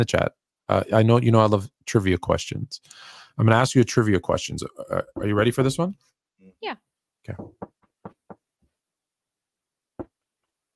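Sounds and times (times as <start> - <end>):
speech: 0.0 - 7.7
knocking on a door: 7.3 - 8.4.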